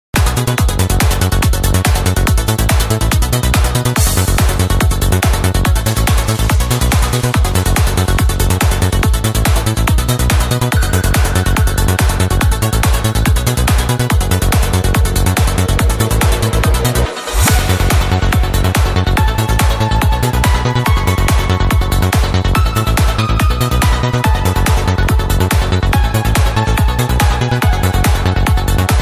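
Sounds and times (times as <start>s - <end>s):
psy trance music: 0.2s - 29.0s.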